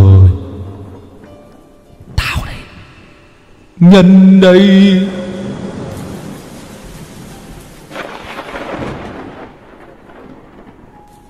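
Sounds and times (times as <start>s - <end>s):
heavy rain: 2.2s - 11.2s
speech: 3.8s - 5.2s
deep rumble of thunder: 4.9s - 11.0s
gusting wind: 5.0s - 11.0s.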